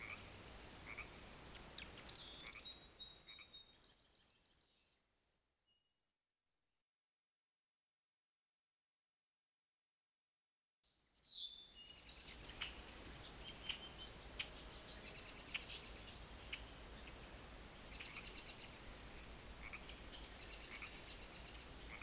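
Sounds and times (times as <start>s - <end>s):
birds: 0.0s - 5.2s, 11.1s - 22.0s
frogs: 0.9s - 1.1s, 19.6s - 22.0s.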